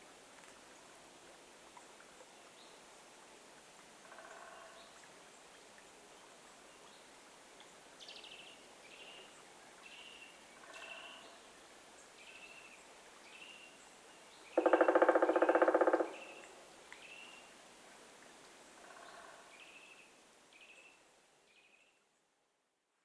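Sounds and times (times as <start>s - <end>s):
black woodpecker call: 14.6s - 16.6s.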